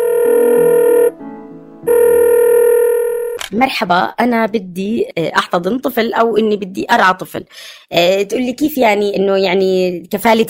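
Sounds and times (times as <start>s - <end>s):
telephone ringback tones on an outgoing call: 0.0s - 1.2s, 1.8s - 3.4s
speech: 3.5s - 10.4s.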